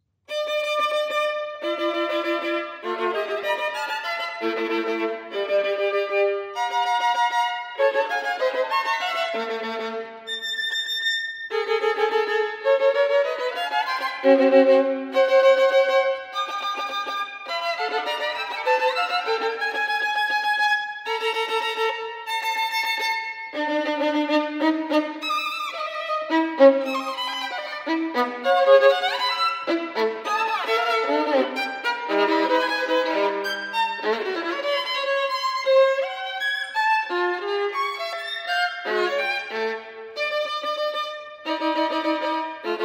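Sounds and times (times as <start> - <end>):
solo violin sonata: 0.2 - 42.8.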